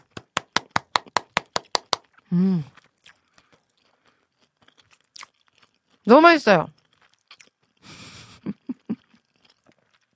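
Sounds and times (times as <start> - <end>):
chewing salmon sushi, soft wet mouth sounds: 1.6 - 6.1, 6.7 - 10.1
speech: 2.3 - 2.8, 6.1 - 6.8.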